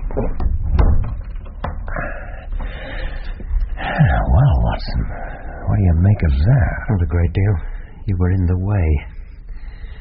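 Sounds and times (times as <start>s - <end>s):
wooden door being closed: 0.0s - 2.8s
soft room rumble: 0.0s - 9.9s
speech: 0.2s - 0.4s, 5.8s - 9.1s.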